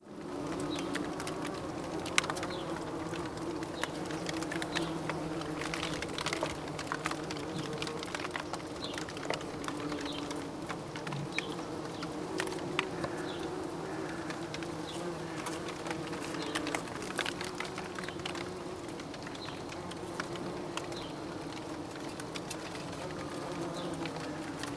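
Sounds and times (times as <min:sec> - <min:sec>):
bees buzzing in a steady low hum: 0:00.0 - 0:24.7.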